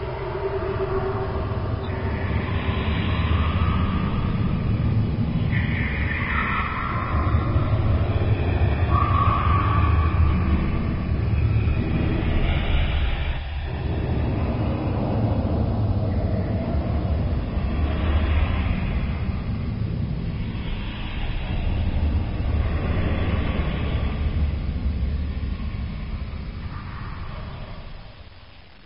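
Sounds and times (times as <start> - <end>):
creepy wind: 0.0 - 28.8.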